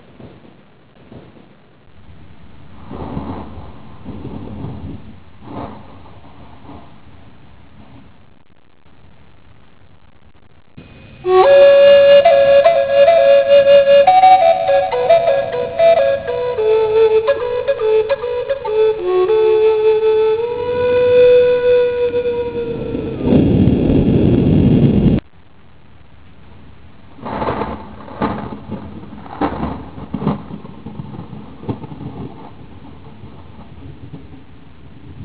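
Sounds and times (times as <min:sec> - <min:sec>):
thunder: 0:00.0 - 0:08.1, 0:11.2 - 0:25.2, 0:27.1 - 0:35.2
flute: 0:11.2 - 0:23.4.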